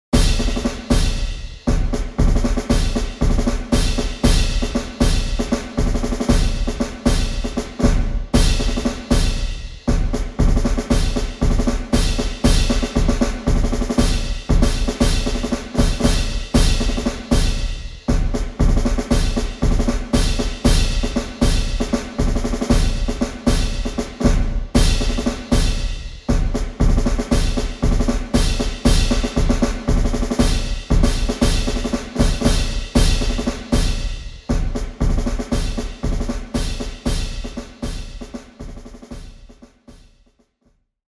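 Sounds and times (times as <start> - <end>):
drum cadence: 0.1 - 40.4.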